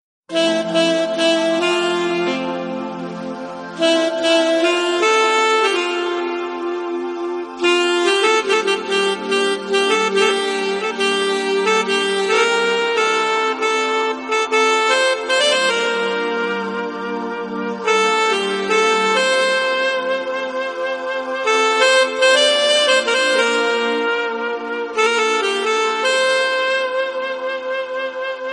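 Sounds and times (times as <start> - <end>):
instrumental music: 0.3 - 28.5.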